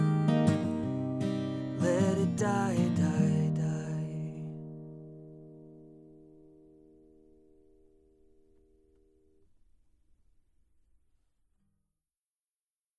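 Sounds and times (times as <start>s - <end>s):
music recorded with omni USB microphone: 0.0s - 9.7s.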